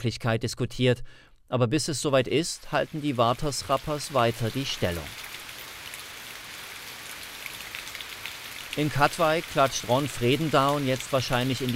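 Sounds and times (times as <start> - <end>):
speech: 0.0 - 5.3, 8.8 - 11.7
rain falling: 2.4 - 11.7.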